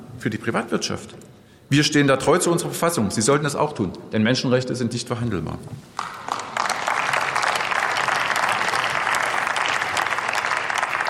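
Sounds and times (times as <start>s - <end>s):
speech: 0.2s - 6.2s
applause in parliament: 6.0s - 11.0s.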